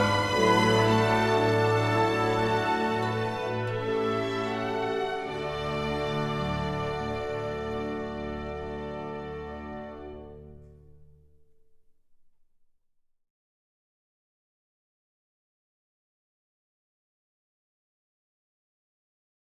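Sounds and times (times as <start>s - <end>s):
national anthem: 0.0s - 10.2s.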